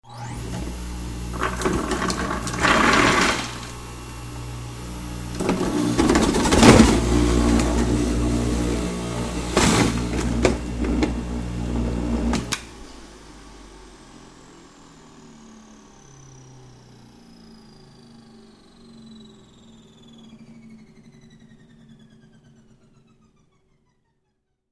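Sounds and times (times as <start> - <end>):
juicer: 0.0 - 13.6
blender: 0.0 - 17.0.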